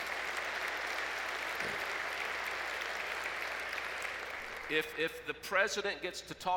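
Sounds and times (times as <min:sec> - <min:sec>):
audience applause: 0:00.0 - 0:05.0
speech: 0:04.7 - 0:06.5.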